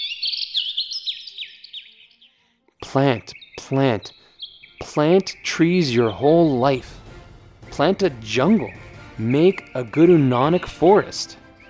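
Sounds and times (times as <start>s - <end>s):
birds chirping in a forest: 0.0s - 11.6s
speech: 2.9s - 4.2s, 4.8s - 7.0s, 7.8s - 11.4s.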